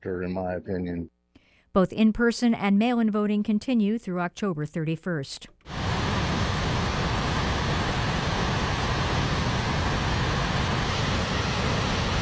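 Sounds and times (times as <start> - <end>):
speech: 0.0 - 5.8
heavy rain: 5.7 - 12.2.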